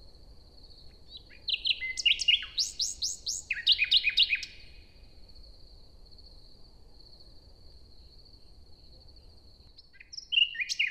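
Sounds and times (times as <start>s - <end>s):
common nightingale singing morning song in a forest in Luxembourg: 0.9s - 4.9s, 9.8s - 10.8s.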